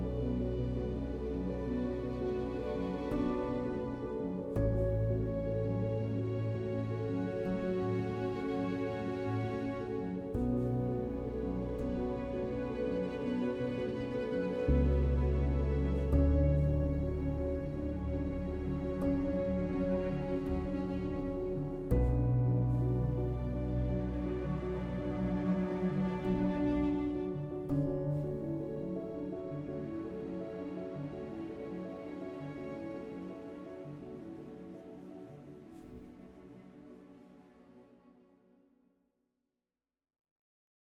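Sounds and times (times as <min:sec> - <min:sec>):
electronic drama music: 0:00.0 - 0:37.6.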